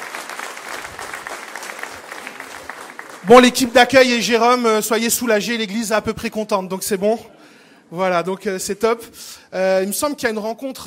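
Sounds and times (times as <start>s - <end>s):
audience applause: 0.0s - 3.7s
speech: 3.2s - 10.8s.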